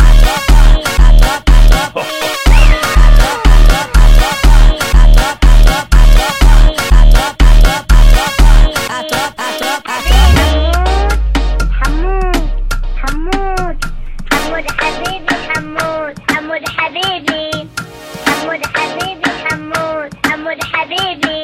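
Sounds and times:
slowed funk music: 0.0s - 8.9s, 10.0s - 16.1s.

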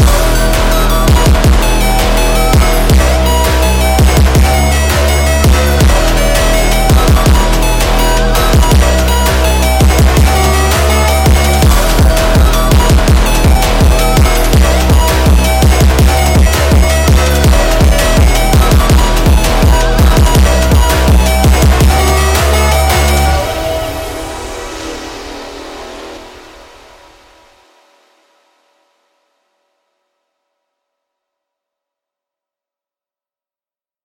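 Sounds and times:
sped up funk music: 0.0s - 24.3s.

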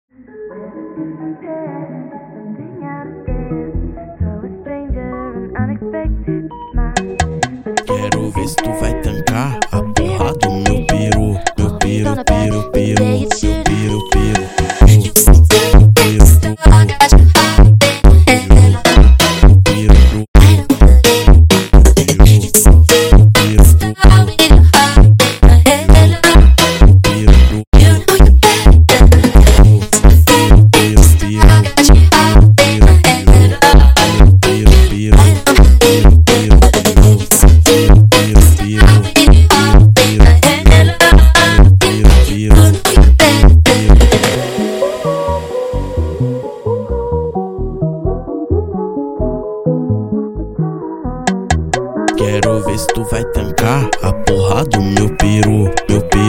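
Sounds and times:
funk music: 6.7s - 56.2s.

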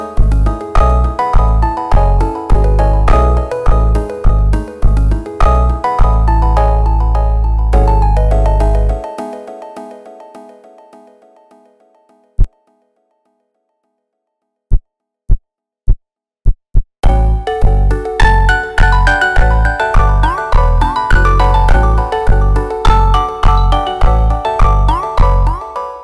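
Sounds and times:
slowed funk instrumental: 0.2s - 9.1s, 17.0s - 25.6s.

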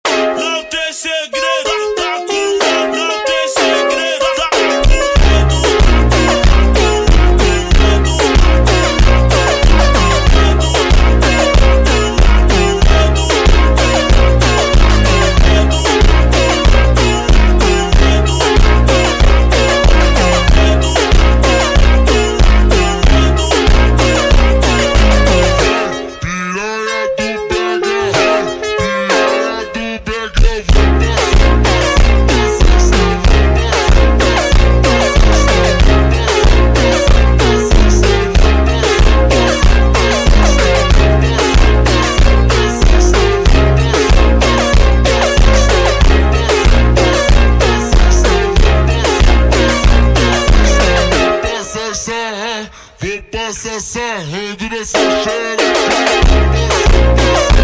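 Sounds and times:
slowed funk montagem music: 0.1s - 51.7s, 55.0s - 57.6s.

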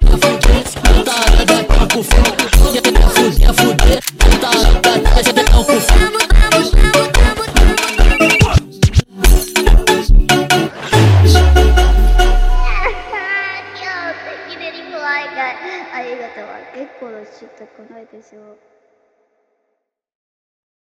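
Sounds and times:
sped up funk music: 0.0s - 13.0s.

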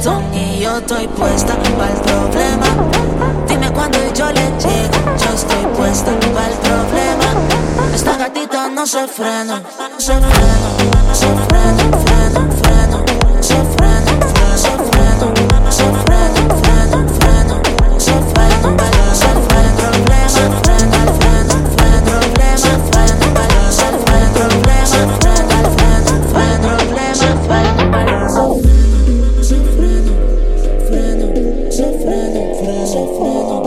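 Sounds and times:
super slowed funk music: 0.1s - 8.2s, 10.1s - 33.5s.

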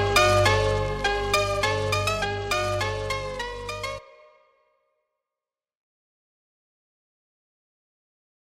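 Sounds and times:
super slowed funk music: 0.0s - 4.3s.

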